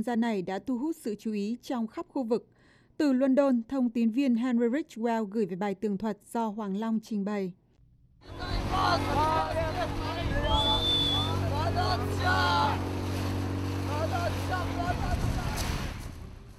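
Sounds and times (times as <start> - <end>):
speech: 0.0 - 7.6, 8.2 - 10.2, 11.8 - 12.9
inflatable boat engine drone at the shore of Lesbos, Greece: 8.2 - 16.5.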